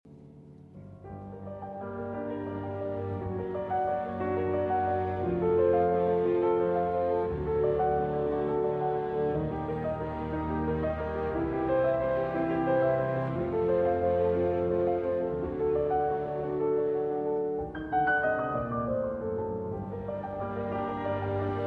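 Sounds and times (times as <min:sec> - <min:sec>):
piano concerto: 0:00.1 - 0:21.6.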